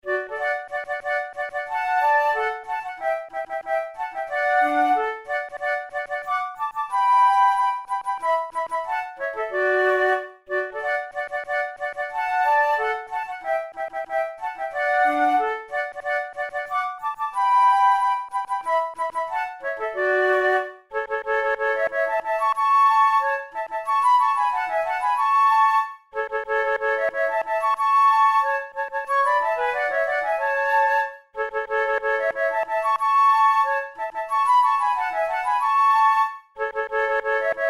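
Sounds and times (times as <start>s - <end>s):
flute duet: 0.0s - 37.6s.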